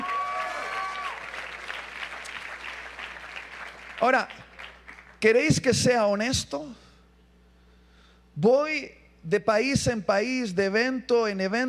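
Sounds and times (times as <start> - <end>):
audience applause: 0.0 - 5.2
speech: 4.0 - 4.5, 5.2 - 6.8, 8.4 - 11.6.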